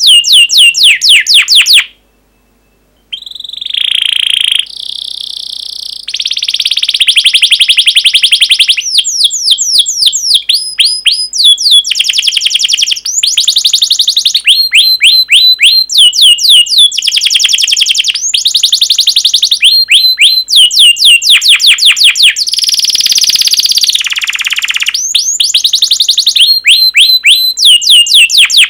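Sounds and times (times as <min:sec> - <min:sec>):
canary song with buzzy trills and whistles: 0:00.0 - 0:28.6.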